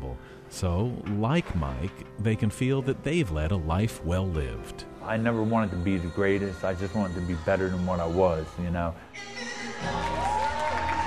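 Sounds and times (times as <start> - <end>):
speech: 0.5 - 10.2
audience applause: 9.8 - 11.0.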